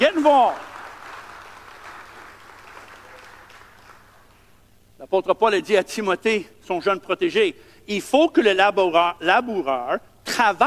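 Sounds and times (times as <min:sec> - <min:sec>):
speech: 0:00.0 - 0:00.7, 0:05.1 - 0:10.6
audience applause: 0:00.0 - 0:04.3.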